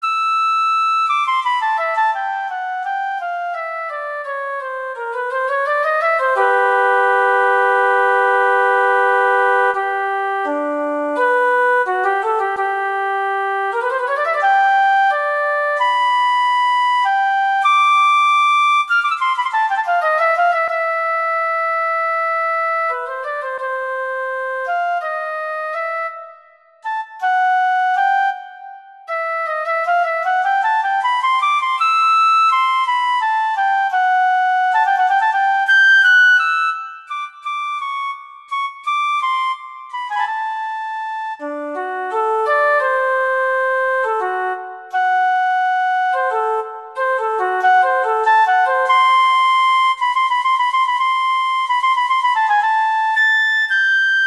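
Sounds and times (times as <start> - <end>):
classical music cadenza: 0.0 - 54.2.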